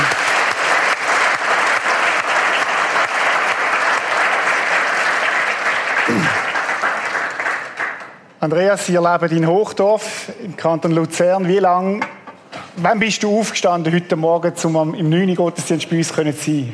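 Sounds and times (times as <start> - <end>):
audience applause: 0.0 - 8.2
speech: 8.4 - 12.2, 12.8 - 16.7.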